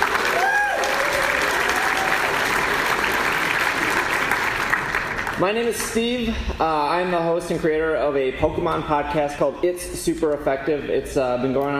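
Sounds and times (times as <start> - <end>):
audience round of applause: 0.0 - 5.4
person whooping: 0.3 - 2.3
speech: 5.4 - 11.7.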